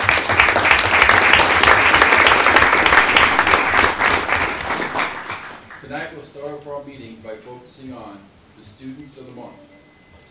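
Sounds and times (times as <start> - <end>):
audience applause: 0.0 - 6.0
speech: 6.8 - 9.7.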